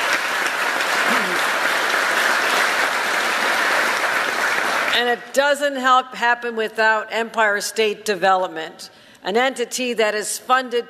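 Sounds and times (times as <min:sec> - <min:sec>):
audience applause: 0:00.0 - 0:05.0
speech: 0:05.0 - 0:10.8.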